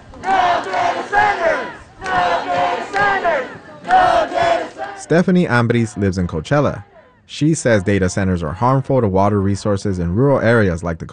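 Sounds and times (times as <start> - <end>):
large crowd of protesters chanting in unison: 0.0 - 8.0
speech: 5.0 - 11.1.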